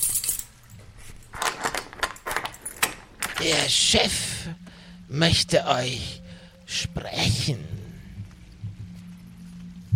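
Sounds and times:
metallic keys jangling in a cell door lock: 0.0 - 3.7
speech: 3.4 - 7.7.

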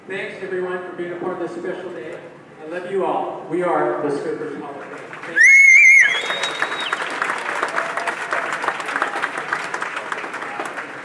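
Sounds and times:
speech: 0.1 - 5.4
audience applause: 4.9 - 11.0.

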